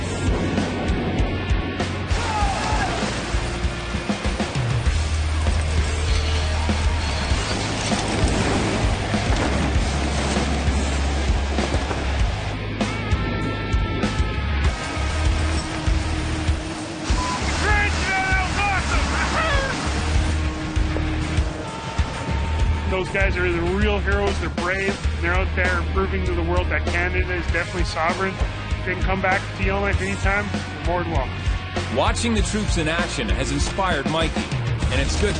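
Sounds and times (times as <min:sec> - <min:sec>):
high tonal whines: 0:00.0 - 0:25.9
deep droning aircraft engine rumble: 0:00.0 - 0:26.4
wind rushing through open aircraft doors: 0:00.0 - 0:26.6
speech: 0:23.1 - 0:35.3.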